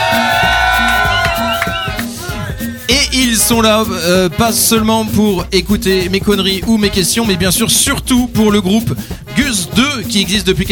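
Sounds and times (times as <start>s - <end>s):
pub audience cheering loudly with whoops: 0.0s - 2.6s
speech: 3.1s - 10.7s.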